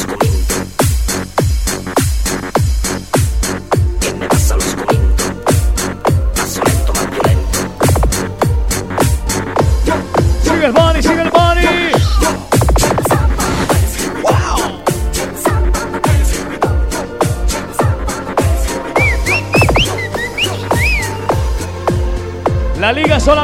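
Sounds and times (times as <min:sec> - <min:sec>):
rhythmic drums and music: 0:00.0 - 0:23.4
person whistling a short bright melody: 0:18.8 - 0:21.5.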